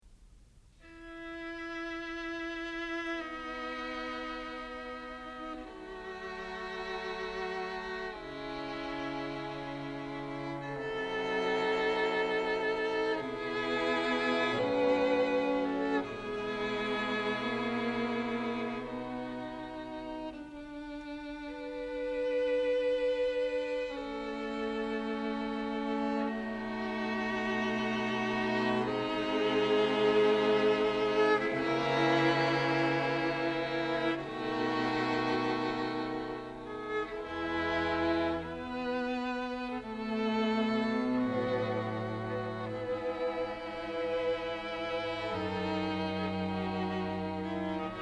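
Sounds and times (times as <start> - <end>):
string quartet playing a molto adagio: 0.7 - 47.9.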